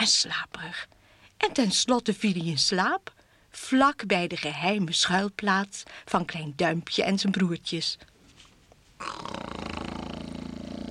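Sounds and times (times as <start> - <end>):
speech: 0.0 - 8.1, 9.0 - 9.6
giant snoring: 9.0 - 10.9.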